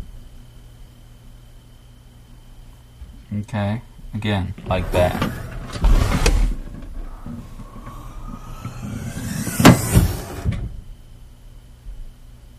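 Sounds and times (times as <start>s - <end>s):
Honda Civic hatchback hydraulics: 4.6s - 10.8s.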